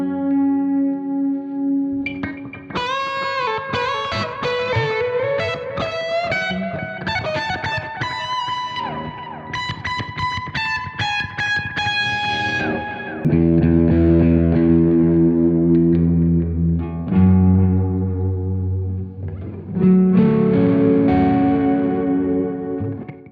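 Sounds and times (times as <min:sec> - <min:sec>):
fuzz pedal on Strat style electric guitar: 0:00.0 - 0:23.2.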